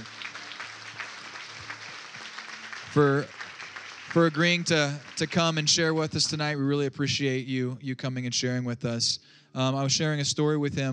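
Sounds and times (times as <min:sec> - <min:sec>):
crowd applause: 0:00.0 - 0:06.6
speech: 0:03.0 - 0:03.4, 0:04.1 - 0:10.9.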